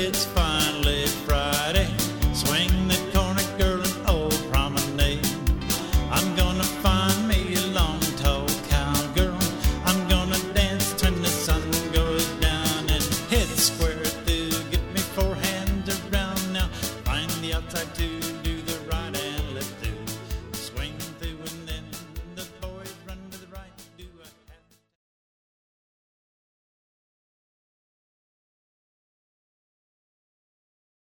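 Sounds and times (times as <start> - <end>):
dance vocal: 0.0 - 24.6.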